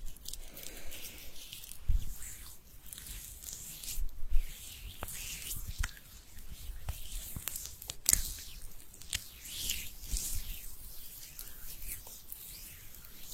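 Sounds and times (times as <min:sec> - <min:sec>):
hands rubbing together: 0:00.0 - 0:13.3.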